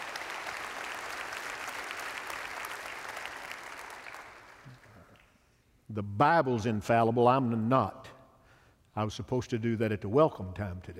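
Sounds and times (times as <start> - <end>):
applause welcoming the University of West Florida basketball team: 0.0 - 5.4
speech: 6.0 - 8.1, 9.0 - 10.9.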